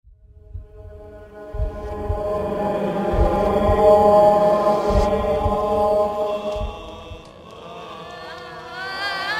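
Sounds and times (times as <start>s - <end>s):
Halloween horror sounds: 0.3s - 9.2s.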